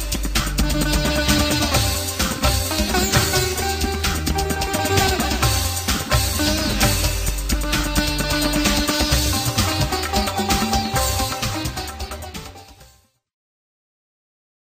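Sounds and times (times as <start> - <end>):
Indian sitar from a VST plugin: 0.0 - 13.1.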